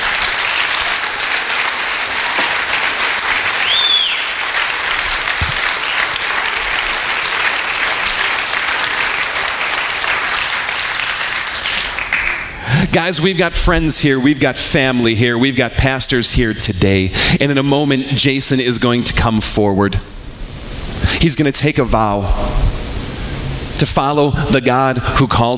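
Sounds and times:
audience applause welcoming a new member into a church brotherhood: 0.0s - 13.0s
whistle: 3.6s - 4.3s
speech: 12.9s - 20.2s, 21.2s - 22.6s, 23.8s - 25.5s.

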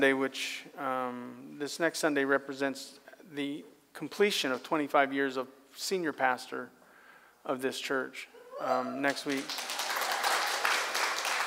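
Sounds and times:
speech: 0.0s - 6.8s, 7.4s - 9.8s
audience applause: 9.0s - 11.4s.

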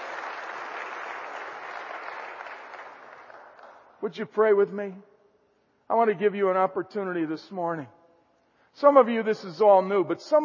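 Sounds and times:
audience clapping: 0.0s - 4.0s
speech: 4.0s - 5.1s, 5.9s - 8.0s, 8.8s - 10.4s.

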